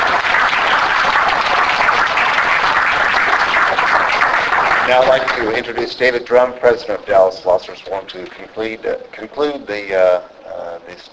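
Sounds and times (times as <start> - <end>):
audience applause for a panel: 0.0 - 7.2
speech: 4.9 - 11.1.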